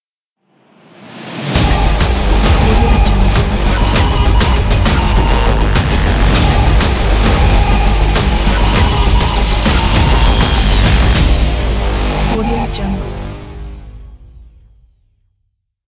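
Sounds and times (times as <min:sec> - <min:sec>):
hybrid drums for an action logo reveal: 0:01.5 - 0:12.4.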